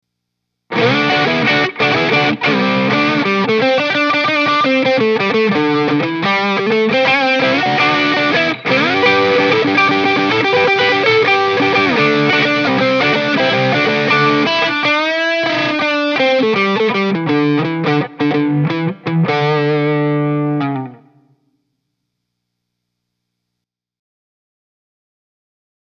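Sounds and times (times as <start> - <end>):
blues music: 0.7 - 21.3.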